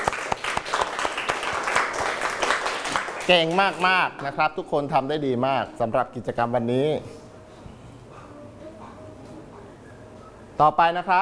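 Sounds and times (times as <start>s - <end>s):
group of people clapping for themselves: 0.0s - 4.4s
speech: 3.3s - 7.2s, 10.6s - 11.2s.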